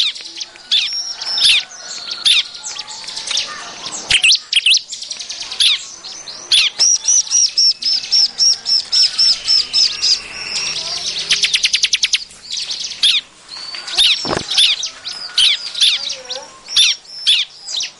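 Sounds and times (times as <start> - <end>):
Bar-winged prinia calls used as a trapping lure: 0.0 - 17.9.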